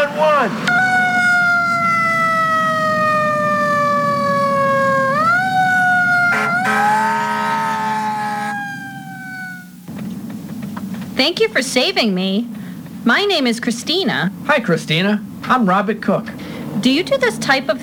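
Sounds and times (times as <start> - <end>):
low engine rumble: 0.0 - 11.2
speech: 0.4 - 0.7, 11.2 - 17.8
ambulance siren wailing: 0.6 - 9.8.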